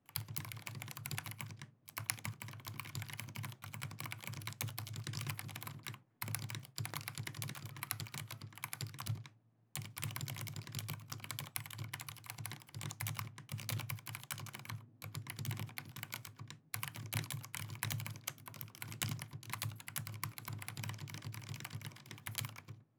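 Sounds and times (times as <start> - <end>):
typing: 0.1 - 22.8.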